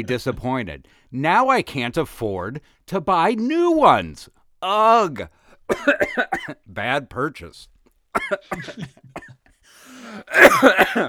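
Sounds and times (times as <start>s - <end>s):
speech: 0.0s - 9.3s, 10.0s - 11.0s
person coughing: 5.7s - 6.6s, 8.2s - 9.4s, 10.0s - 11.0s
breathy wheeze: 9.6s - 10.4s.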